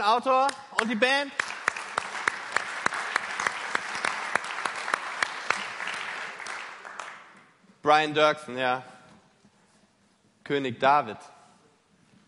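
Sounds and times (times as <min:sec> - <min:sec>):
speech: 0:00.0 - 0:01.4, 0:07.8 - 0:08.9, 0:10.5 - 0:11.3
audience applause: 0:00.8 - 0:07.4.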